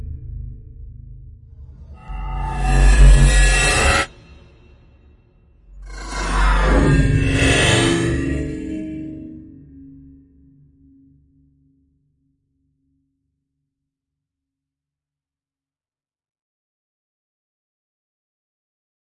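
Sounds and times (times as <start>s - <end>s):
drones: 1.6s - 4.7s, 5.7s - 9.9s.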